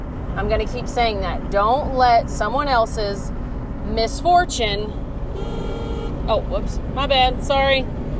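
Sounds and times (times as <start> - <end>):
speech: 0.4 - 5.5, 6.3 - 8.0
car horn honk: 5.3 - 6.3.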